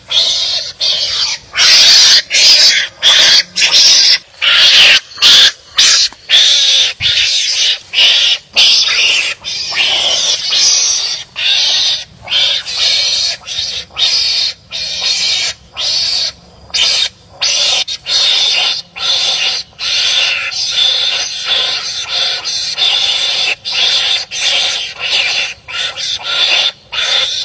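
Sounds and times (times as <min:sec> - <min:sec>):
mongoose giving raspy hissing calls: 0:00.0 - 0:27.4.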